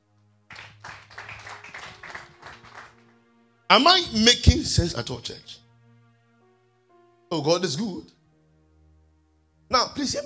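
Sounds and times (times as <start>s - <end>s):
group of people clapping their hands: 0.5s - 3.2s
speech: 3.7s - 5.6s, 7.3s - 8.2s, 10.0s - 10.2s.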